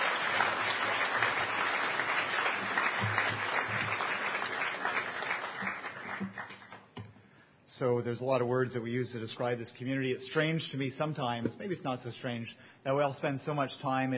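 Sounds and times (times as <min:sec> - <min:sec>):
crowd applauding: 0:00.0 - 0:06.9
speech: 0:07.8 - 0:14.1.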